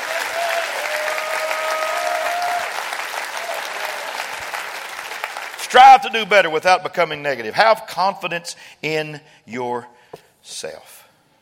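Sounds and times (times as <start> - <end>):
audience clapping: 0.0 - 6.3
speech: 5.7 - 11.0.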